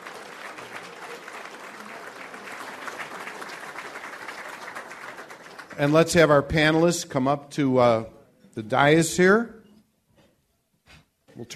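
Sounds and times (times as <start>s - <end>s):
audience applause: 0.0s - 6.2s
speech: 5.8s - 9.6s, 11.4s - 11.5s.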